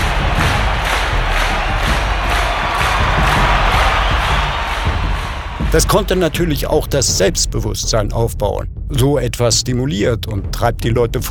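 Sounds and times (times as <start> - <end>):
loud roar of cheering voices: 0.0 - 7.2
spectators' rhythmic unison clapping: 0.0 - 7.6
speech: 5.7 - 11.2.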